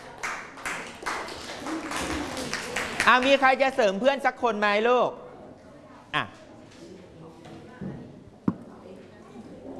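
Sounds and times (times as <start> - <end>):
classroom applause for a classmate: 0.0 - 3.8
speech: 3.1 - 5.2, 6.1 - 6.4.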